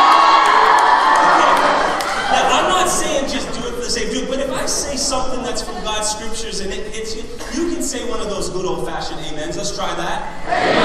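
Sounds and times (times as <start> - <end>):
crowd of students cheering and whooping: 0.0 - 3.1, 10.5 - 10.8
laughter: 1.0 - 7.8, 10.4 - 10.8.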